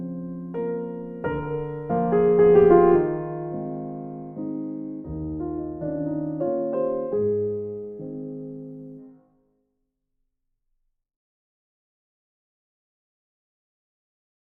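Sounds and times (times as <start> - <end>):
waltz music: 0.0 - 9.0.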